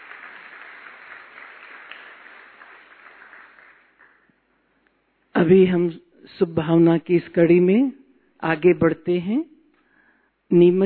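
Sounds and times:
audience applause: 0.0s - 4.3s
speech: 5.4s - 9.5s, 10.5s - 10.8s.

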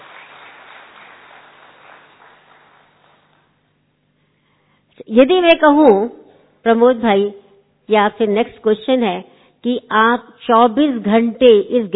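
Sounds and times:
faint applause: 0.0s - 3.5s
speech: 5.0s - 11.9s.

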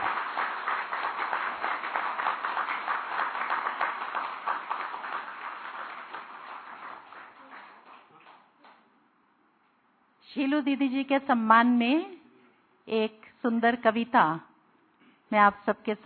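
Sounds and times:
audience clapping loudly: 0.0s - 8.8s
speech: 10.4s - 12.1s, 12.9s - 14.5s, 15.3s - 16.0s.

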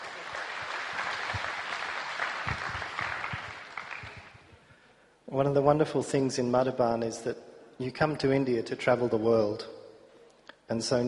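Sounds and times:
audience applause: 0.0s - 4.5s
speech: 5.3s - 9.8s, 10.7s - 11.0s.

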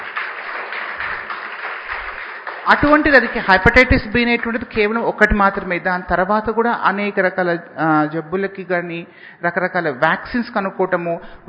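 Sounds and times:
audience clapping at a talk about low-cost vaccine development: 0.0s - 3.9s
speech: 2.6s - 11.4s.

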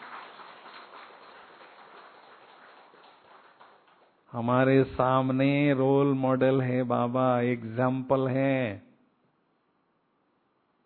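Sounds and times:
crowd applause: 0.0s - 4.2s
speech: 4.3s - 8.9s.

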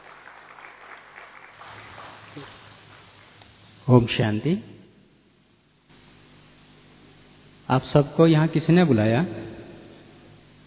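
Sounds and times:
audience applause: 0.0s - 3.4s
speech: 2.4s - 2.6s, 3.9s - 4.8s, 7.7s - 9.5s.

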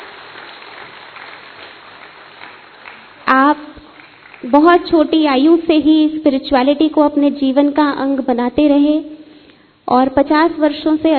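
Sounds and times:
audience applause: 0.0s - 4.5s
speech: 4.4s - 9.1s, 9.9s - 11.1s.

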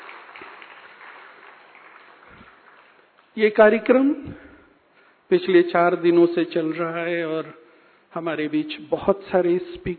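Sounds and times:
audience applause at a religious gathering: 0.0s - 3.2s
speech: 3.4s - 4.5s, 5.3s - 9.9s.

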